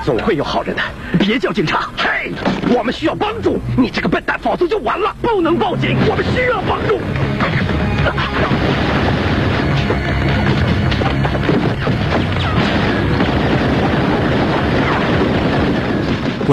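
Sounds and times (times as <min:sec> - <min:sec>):
speech: 0:00.0 - 0:08.8
hand grenade explosion in a house: 0:05.8 - 0:16.5.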